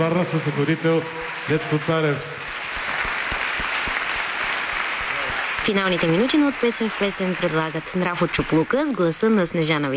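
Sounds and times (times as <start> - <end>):
speech: 0.0 - 2.5, 5.6 - 9.9
audience applause: 0.0 - 9.4.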